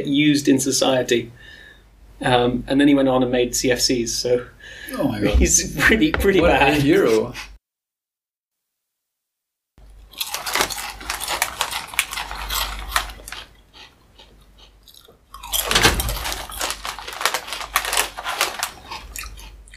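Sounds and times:
speech: 0:00.0 - 0:01.6, 0:02.2 - 0:07.5
person chewing crunchy chips: 0:09.8 - 0:19.7.

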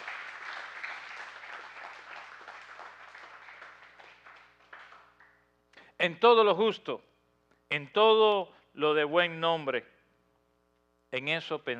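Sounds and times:
audience applause: 0:00.0 - 0:05.4
speech: 0:06.0 - 0:07.1, 0:07.7 - 0:09.9, 0:11.1 - 0:11.7.

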